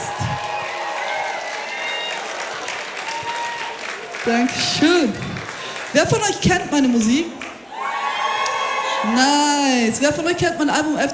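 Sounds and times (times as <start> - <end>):
festival crowd cheering and applauding for the DJ: 0.0 - 6.5, 7.3 - 9.6
speech: 4.2 - 5.3, 5.9 - 7.4, 9.0 - 11.1.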